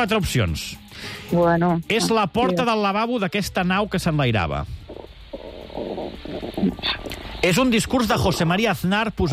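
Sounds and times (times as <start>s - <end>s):
speech: 0.0s - 4.8s, 5.8s - 9.3s
stomach rumbling: 4.7s - 7.3s.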